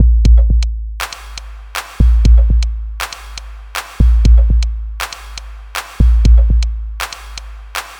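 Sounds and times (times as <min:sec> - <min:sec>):
drum loop: 0:00.0 - 0:07.9.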